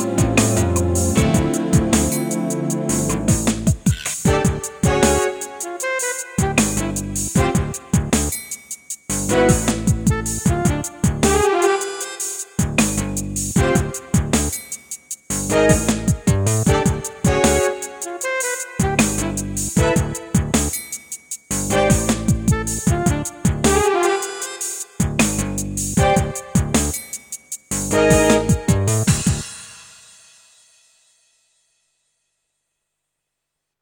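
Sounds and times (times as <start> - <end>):
brass song: 0.0 - 8.4, 9.1 - 14.5, 15.3 - 20.8, 21.6 - 27.0, 27.8 - 29.8.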